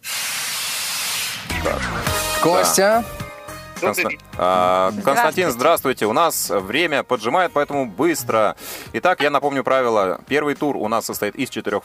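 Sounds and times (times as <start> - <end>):
train emergency brake air hiss: 0.0 - 1.5
speech: 1.6 - 3.2, 3.8 - 11.8.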